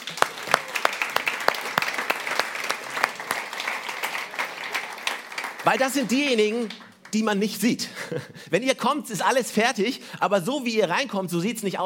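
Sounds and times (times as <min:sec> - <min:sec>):
audience applause: 0:00.0 - 0:07.3
speech: 0:05.6 - 0:11.8
laughter: 0:07.8 - 0:08.5.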